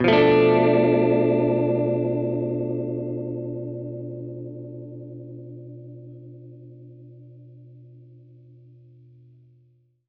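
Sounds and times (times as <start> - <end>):
Gretsch guitar B7b5 chord: 0.0 - 7.9.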